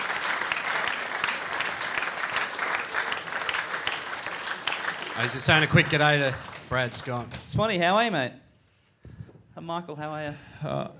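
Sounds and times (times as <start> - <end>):
audience applause at a live show: 0.0 - 7.6
speech: 5.2 - 8.4, 9.6 - 10.9.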